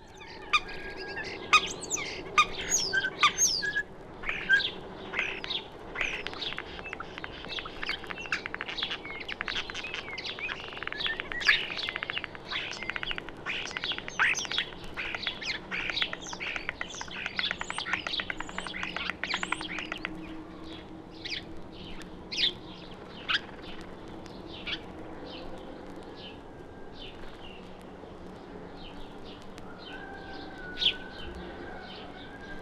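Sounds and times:
songbird singing, mimicking linnet and yellowhammer song: 0.0 - 32.6.

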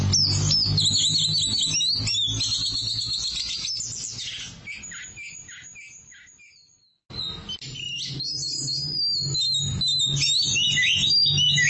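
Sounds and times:
Oriental magpie-robin singing: 0.0 - 11.6.

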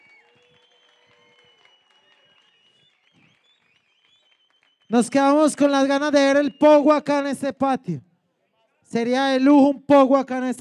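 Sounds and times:
audience applause: 0.0 - 5.4
speech: 4.9 - 8.1, 8.9 - 10.5.

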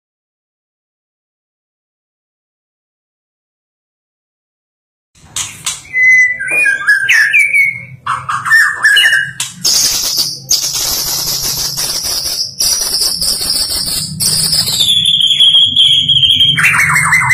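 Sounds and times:
bird chirps and trills: 5.4 - 17.3.

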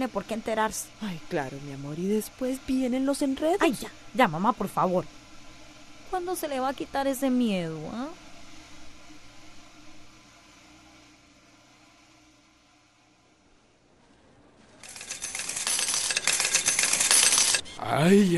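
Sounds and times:
speech: 0.0 - 5.2, 6.1 - 8.2, 17.9 - 18.3
low steady hum: 0.0 - 14.8
many coins poured out for a deposit, jingling and clinking: 14.8 - 17.8.

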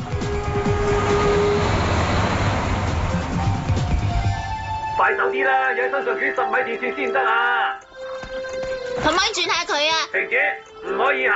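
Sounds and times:
runaway subway train rumbling on rails: 0.0 - 5.0
speech: 5.3 - 7.8, 9.0 - 11.3.

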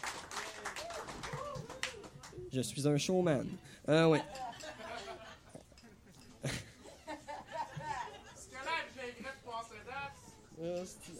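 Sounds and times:
clapping: 0.0 - 2.4
speech: 2.5 - 4.5, 10.6 - 11.1
laughter: 4.0 - 8.7.

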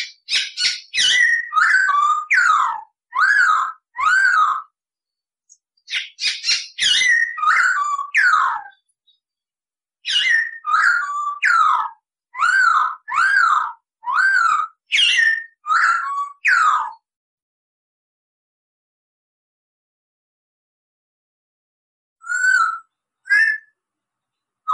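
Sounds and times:
Masked laughingthrush singing loud whistled and chattering notes: 0.0 - 4.7, 5.5 - 8.9, 10.0 - 17.0, 22.2 - 23.8.

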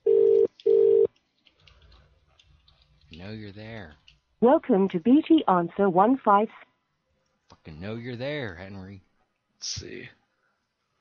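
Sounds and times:
UK-style telephone ringback tone: 0.0 - 1.1
speech: 3.3 - 6.7, 7.6 - 10.2.

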